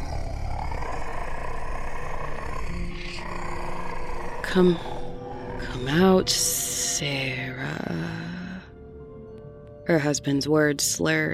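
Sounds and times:
creature's slow moaning roar: 0.0s - 6.6s
speech: 4.5s - 4.9s, 5.8s - 8.3s, 9.9s - 11.3s.

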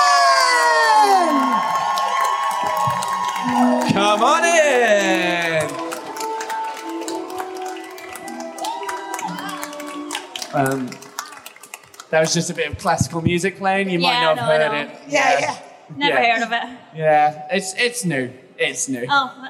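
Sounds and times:
audience cheering and applauding: 0.0s - 12.9s
speech: 12.1s - 19.4s.

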